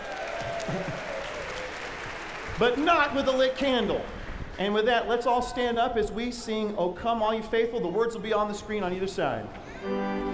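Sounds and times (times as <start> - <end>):
audience applauding: 0.0 - 4.1
speech: 2.6 - 10.2.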